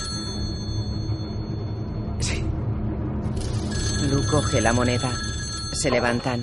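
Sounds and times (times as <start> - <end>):
telephone ringing: 0.0 - 1.8, 3.4 - 6.4
constant low rumble: 0.0 - 6.4
speech: 4.3 - 6.4.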